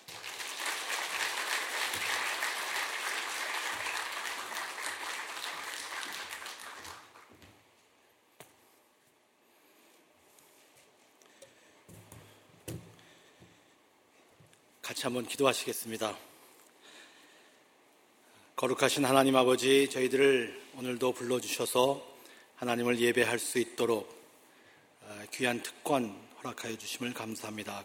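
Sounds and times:
audience applauding: 0.0 - 7.4
speech: 14.9 - 16.3, 18.6 - 24.2, 25.4 - 27.8.

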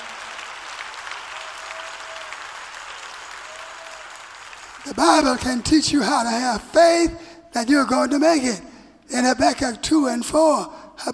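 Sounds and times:
audience clapping: 0.0 - 6.8
speech: 4.8 - 11.1.

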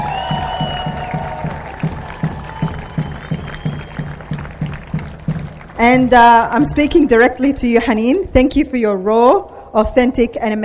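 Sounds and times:
whoops and cheering: 0.0 - 5.0
audience clapping rhythmically: 0.0 - 7.4
speech: 5.8 - 10.6.

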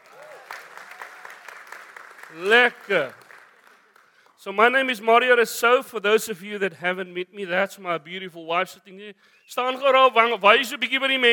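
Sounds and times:
audience applauding steadily: 0.0 - 4.4
speech: 2.3 - 3.2, 4.4 - 11.3.

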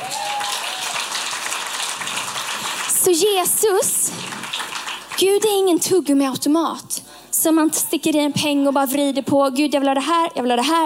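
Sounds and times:
audience applause: 0.0 - 5.2
speech: 3.0 - 4.3, 5.2 - 10.8.

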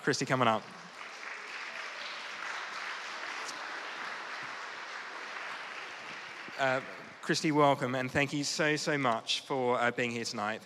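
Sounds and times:
speech: 0.0 - 0.9, 6.6 - 10.6
crowd applauding: 0.0 - 7.6.

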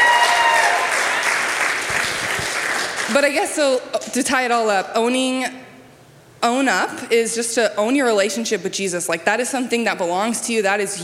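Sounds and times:
crowd applauding: 0.0 - 3.2
speech: 3.1 - 5.6, 6.4 - 11.0.

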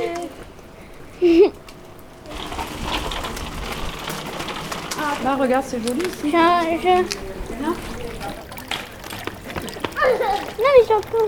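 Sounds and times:
water trickling and splashing: 2.0 - 11.2
speech: 5.4 - 8.5, 10.6 - 11.2.

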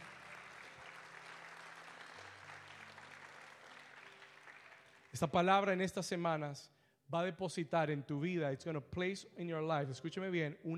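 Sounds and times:
audience applauding: 0.0 - 5.3
speech: 5.2 - 10.7.

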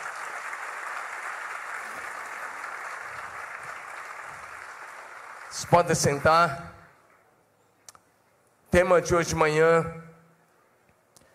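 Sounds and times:
audience applause: 0.0 - 6.5
speech: 5.5 - 6.7, 8.7 - 10.1.

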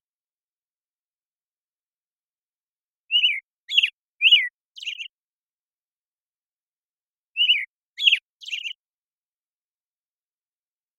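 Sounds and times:
American robin singing: 3.0 - 5.2, 7.3 - 8.9.

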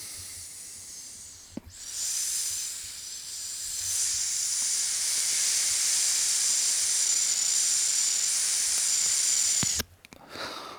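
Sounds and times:
inhaling from a vape pen: 0.0 - 10.7.

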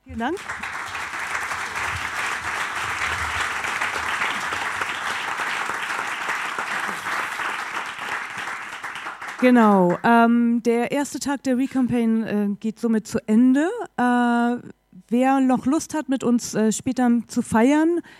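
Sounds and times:
speech: 0.1 - 0.8, 9.4 - 18.1
audience applause: 0.2 - 10.0.

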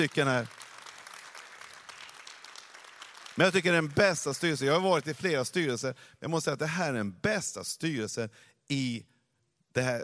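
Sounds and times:
speech: 0.0 - 0.6, 3.4 - 9.1, 9.8 - 10.0
warm audience applause: 0.0 - 4.6.

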